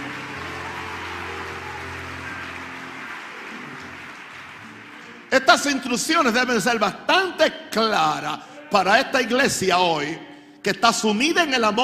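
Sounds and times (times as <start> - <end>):
audience applauding: 0.0 - 6.4
speech: 5.3 - 11.8.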